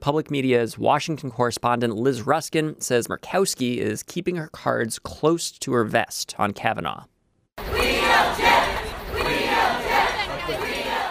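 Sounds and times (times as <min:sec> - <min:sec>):
speech: 0:00.0 - 0:07.1
abortion rights protest crowd shouting outside the Supreme Court: 0:07.6 - 0:11.0.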